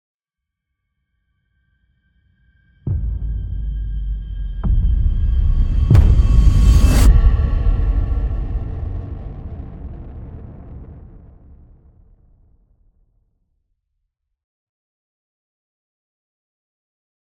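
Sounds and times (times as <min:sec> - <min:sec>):
outro stinger music: 0:02.9 - 0:11.6.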